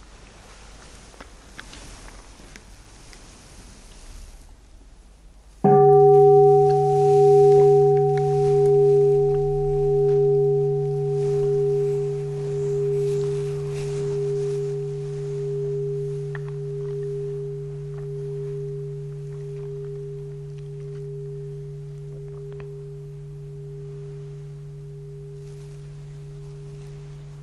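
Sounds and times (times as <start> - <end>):
meditation bell ringing: 5.6 - 27.4.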